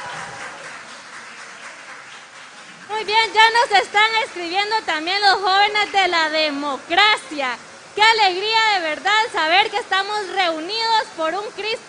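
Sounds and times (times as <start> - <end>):
audience applause: 0.0 - 4.4
speech: 3.0 - 11.8.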